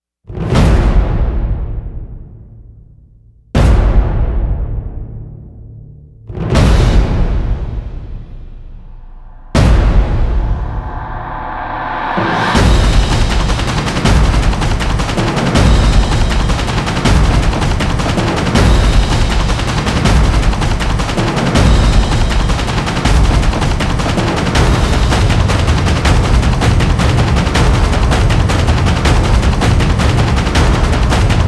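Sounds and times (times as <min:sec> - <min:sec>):
drums: 0:00.3 - 0:31.4.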